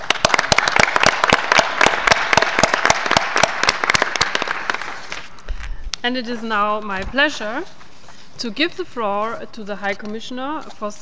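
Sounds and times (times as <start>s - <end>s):
audience applause: 0.0s - 5.3s
speech: 6.1s - 7.8s, 8.4s - 11.0s.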